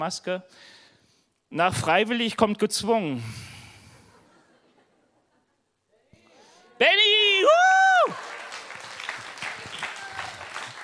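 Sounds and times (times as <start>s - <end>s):
speech: 0.0s - 0.8s, 1.5s - 3.6s
audience applause: 7.5s - 10.8s.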